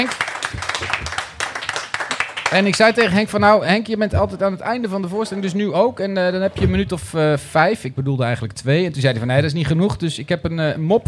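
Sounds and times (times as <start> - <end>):
audience applause: 0.0 - 3.2
speech: 2.5 - 11.0.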